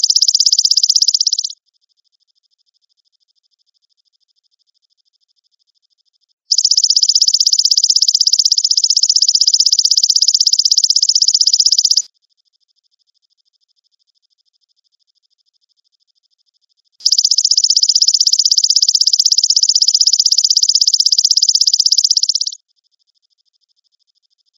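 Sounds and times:
grasshopper trilling: 0:00.0 - 0:01.6, 0:06.5 - 0:12.1, 0:17.0 - 0:22.6.

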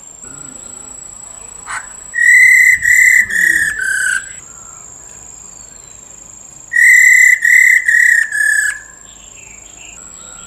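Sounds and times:
Black-throated laughingthrush whistling: 0:00.2 - 0:04.9, 0:06.7 - 0:08.9.

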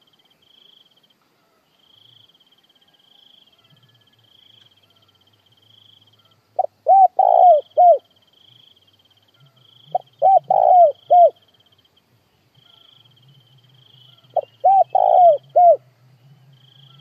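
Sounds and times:
spotted dove cooing: 0:06.2 - 0:08.1, 0:09.4 - 0:11.4, 0:14.1 - 0:15.8.

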